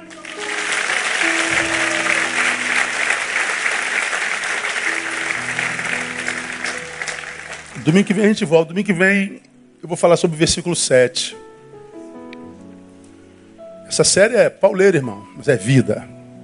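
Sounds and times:
audience applauding: 0.0s - 8.4s
speech: 7.9s - 11.4s, 14.0s - 16.1s.

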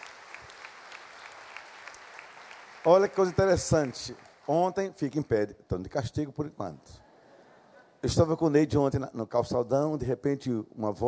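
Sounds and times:
audience applause: 0.0s - 4.7s
speech: 2.8s - 7.0s, 8.0s - 11.0s.

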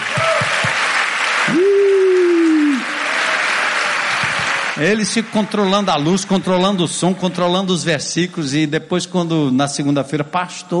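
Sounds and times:
audience applause: 0.0s - 7.7s
speech: 4.8s - 10.7s.

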